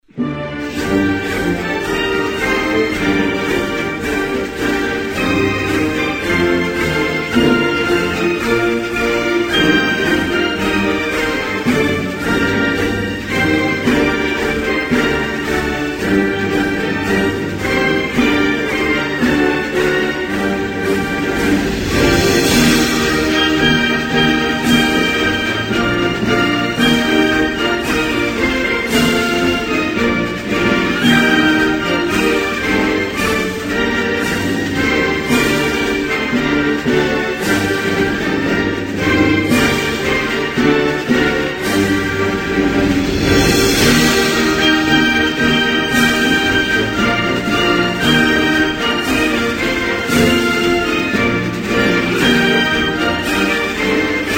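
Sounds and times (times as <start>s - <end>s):
national anthem music: 0.0s - 54.3s.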